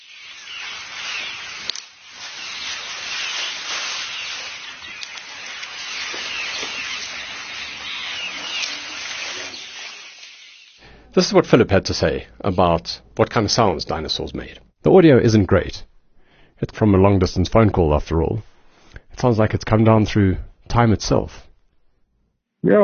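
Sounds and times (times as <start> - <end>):
herd of elephants grazing in the Sabi River Valley: 0.0 - 10.8
speech: 11.2 - 15.9, 16.6 - 18.5, 19.2 - 21.4, 22.6 - 22.8.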